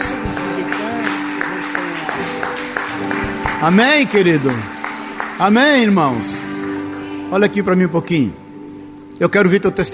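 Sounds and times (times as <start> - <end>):
audience applause: 0.0 - 7.4
speech: 3.6 - 4.7, 5.4 - 6.4, 7.3 - 8.4, 9.2 - 9.9.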